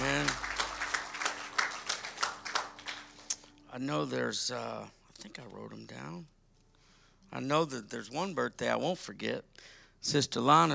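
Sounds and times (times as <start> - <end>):
audience hand clapping: 0.0 - 3.6
speech: 3.8 - 6.4, 7.3 - 10.7.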